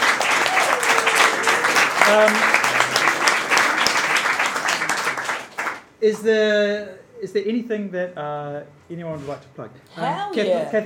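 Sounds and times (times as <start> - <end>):
audience applause for the show's illustrator: 0.0 - 5.9
speech: 2.1 - 2.6, 6.0 - 10.8.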